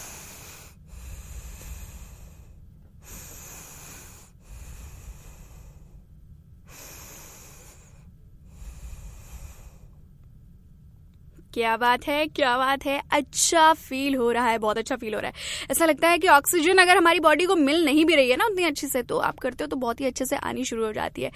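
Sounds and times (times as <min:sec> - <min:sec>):
long deep breathing during a yoga exercise: 0:00.0 - 0:10.1, 0:15.3 - 0:15.7
speech: 0:11.6 - 0:21.3.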